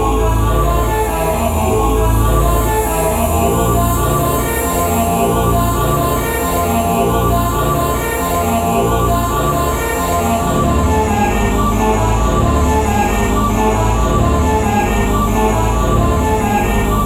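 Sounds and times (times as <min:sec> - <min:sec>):
choir singing: 0:00.0 - 0:17.0.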